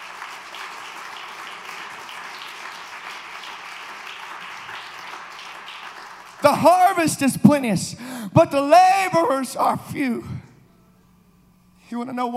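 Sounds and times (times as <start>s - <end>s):
audience clapping hands: 0.0s - 7.7s
speech: 6.4s - 10.4s, 11.9s - 12.3s.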